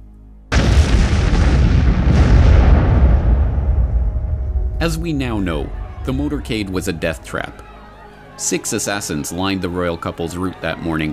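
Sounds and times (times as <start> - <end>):
bomb explosion: 0.5 - 7.3
speech: 4.8 - 7.7, 8.4 - 11.1.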